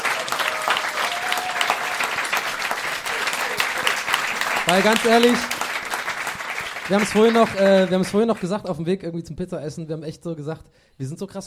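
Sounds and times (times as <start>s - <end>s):
audience applause: 0.0s - 8.5s
speech: 4.7s - 5.5s, 6.9s - 11.4s.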